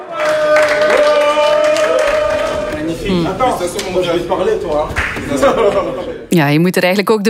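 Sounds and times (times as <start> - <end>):
scattered clapping: 0.0 - 5.6
excited voices cheering Jeremy Doku at the Red Devils' team hotel in Seattle: 0.0 - 6.1
speech: 3.4 - 7.2
laughter: 5.0 - 6.3.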